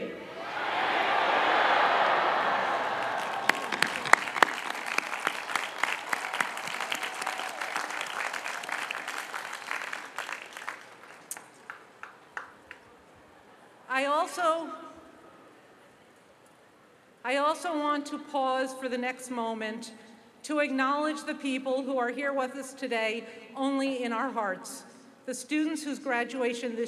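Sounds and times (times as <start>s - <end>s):
huge crowd of graduates yelling thank you: 0.2s - 11.3s
graduates clapping: 1.0s - 12.9s
speech: 17.6s - 26.8s.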